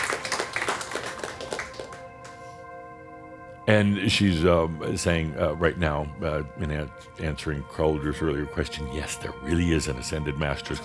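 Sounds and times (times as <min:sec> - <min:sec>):
audience clapping: 0:00.0 - 0:02.5
speech: 0:03.7 - 0:10.8.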